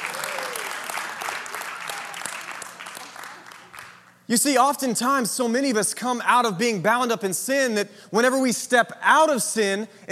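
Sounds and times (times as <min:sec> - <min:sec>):
audience clapping: 0:00.0 - 0:04.3
speech: 0:04.3 - 0:10.1.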